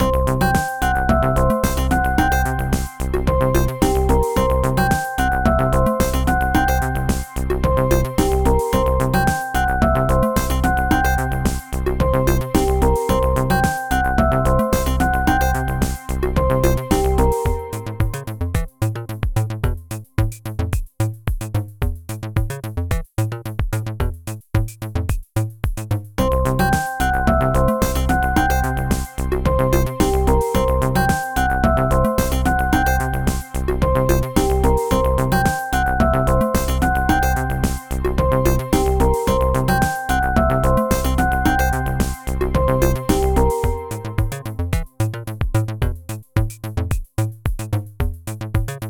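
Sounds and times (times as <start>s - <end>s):
funky electronic music: 0.0s - 25.2s, 26.2s - 48.8s.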